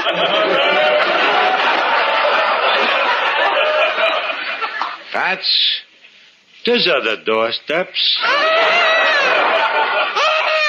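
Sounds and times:
laughter: 0.0 - 5.1, 8.2 - 10.6
speech: 0.1 - 0.4, 5.3 - 5.8, 6.6 - 8.8
baby crying: 8.2 - 9.6, 10.2 - 10.6.

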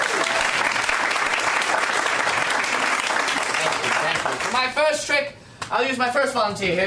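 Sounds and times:
audience applause for the volunteers: 0.0 - 4.7
speech: 4.6 - 6.8.

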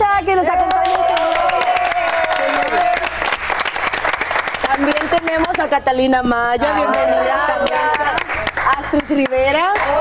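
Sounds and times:
applause: 0.6 - 5.8, 6.6 - 9.9
speech: 5.6 - 8.2, 8.9 - 9.9.

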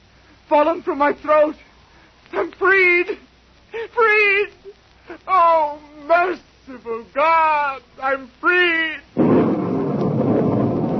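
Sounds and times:
speech: 0.5 - 1.7, 2.3 - 9.0
thunderstorm breaking: 9.2 - 10.9.

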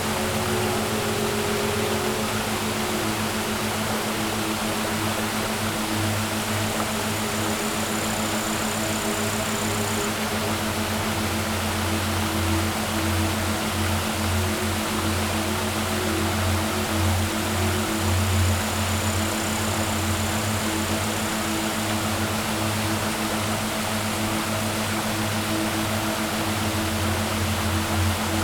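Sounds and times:
waterfall: 0.0 - 28.4.

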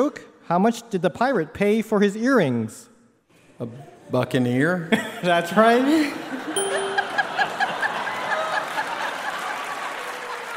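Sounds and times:
speech: 0.0 - 2.9, 3.6 - 6.6
laughter: 4.9 - 10.5
audience applause: 6.8 - 10.5.

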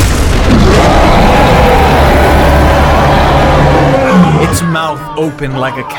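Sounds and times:
giant worm bursting out of sand with a roaring rumble: 0.0 - 4.7
speech: 4.6 - 5.9.

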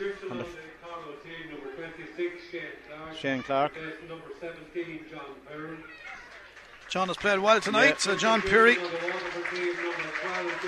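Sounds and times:
speech: 2.2 - 6.2, 6.9 - 10.6
crowd applause: 5.8 - 10.6.

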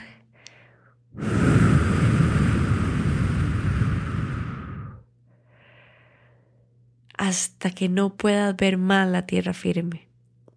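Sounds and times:
person blowing air: 1.1 - 5.1
speech: 7.3 - 10.1.

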